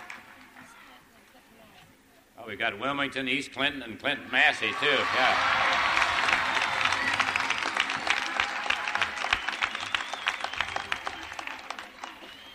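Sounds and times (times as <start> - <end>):
crowd applauding: 0.0 - 0.6, 4.7 - 12.5
speech: 2.4 - 5.9.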